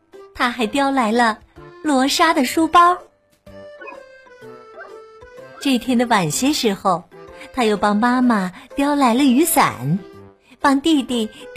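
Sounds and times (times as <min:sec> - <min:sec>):
speech: 0:00.4 - 0:03.1, 0:05.6 - 0:11.5
small dog barking: 0:03.8 - 0:04.1, 0:04.7 - 0:05.6.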